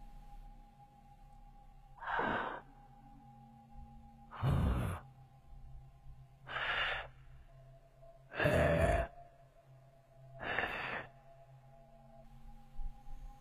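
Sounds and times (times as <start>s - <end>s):
low steady hum: 0.0s - 13.4s
raspy wheezing breaths from three people: 2.0s - 2.7s, 4.3s - 5.1s, 6.4s - 7.4s, 8.3s - 9.2s, 10.4s - 11.3s.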